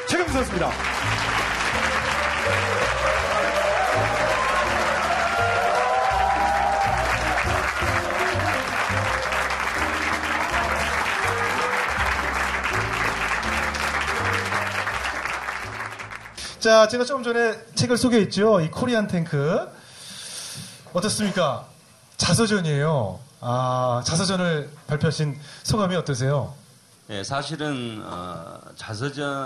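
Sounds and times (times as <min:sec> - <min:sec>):
big welcoming applause: 0:00.0 - 0:16.6
speech: 0:00.3 - 0:00.9, 0:16.6 - 0:19.7, 0:21.0 - 0:29.4.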